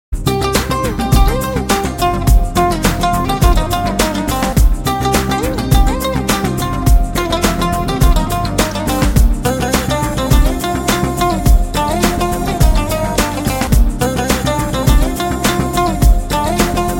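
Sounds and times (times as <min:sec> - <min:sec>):
guitar: 0:00.2 - 0:16.9.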